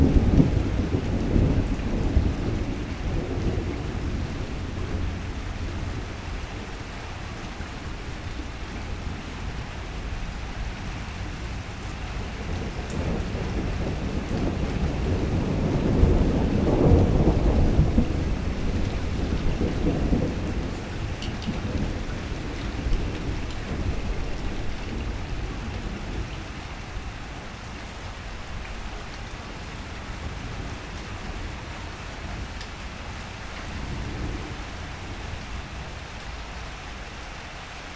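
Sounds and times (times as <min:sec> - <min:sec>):
thunder in Vedia Buenas Aires Province Argentina: 0:00.0 - 0:05.2, 0:12.2 - 0:26.3
rain in Vedia Buenas Aires Province Argentina: 0:00.0 - 0:37.9.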